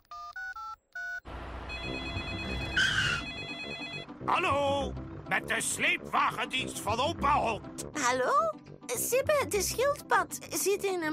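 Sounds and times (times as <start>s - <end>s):
electronic dialing beeps: 0.0s - 4.1s
telephone ringing during outgoing call: 0.1s - 4.2s
speech: 4.3s - 11.1s.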